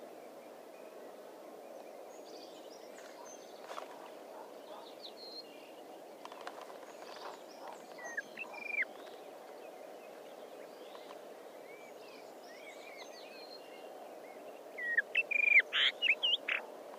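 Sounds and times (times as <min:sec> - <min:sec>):
Rufous-tailed rock thrush giving high chattering notes: 0:14.9 - 0:16.6.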